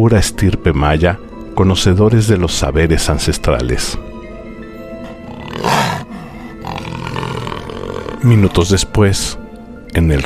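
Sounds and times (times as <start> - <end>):
speech: 0.0 - 4.1, 8.2 - 9.4, 10.0 - 10.2
jaguar roaring and growling: 5.0 - 8.7.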